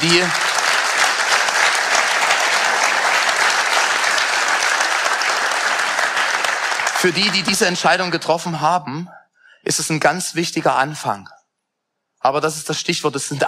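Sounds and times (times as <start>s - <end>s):
audience applause: 0.0s - 8.4s
speech: 0.1s - 0.5s, 7.0s - 11.4s, 12.2s - 13.4s.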